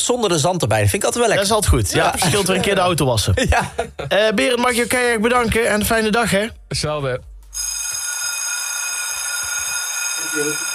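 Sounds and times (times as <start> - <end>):
speech: 0.0 - 7.7, 10.4 - 10.7
laughter: 1.9 - 4.2
school bell ringing: 7.6 - 10.7.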